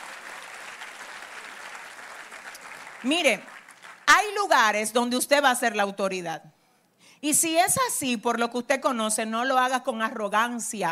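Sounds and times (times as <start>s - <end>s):
audience clapping at a Spanish-language talk: 0.0s - 4.4s
speech: 3.0s - 3.5s, 4.1s - 6.5s, 7.2s - 10.9s.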